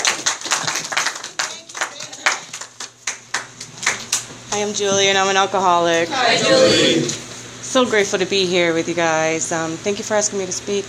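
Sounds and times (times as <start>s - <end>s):
audience clapping at an alcoholics' recovery meeting: 0.0s - 4.3s
speech: 4.6s - 10.8s.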